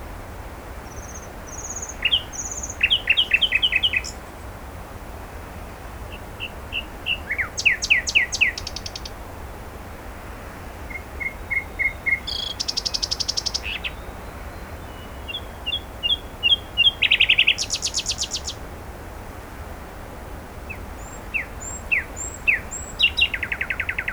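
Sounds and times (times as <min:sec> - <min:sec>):
low background hiss: 0:00.0 - 0:24.1
common nightingale singing: 0:00.9 - 0:04.2, 0:06.1 - 0:09.2, 0:10.9 - 0:18.6, 0:20.7 - 0:24.1.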